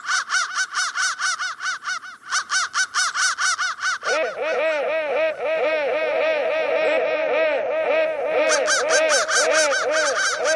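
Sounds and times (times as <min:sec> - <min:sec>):
crow caws electronically warped into pitch-bending tones: 0:00.0 - 0:10.5
laughter: 0:04.0 - 0:10.0.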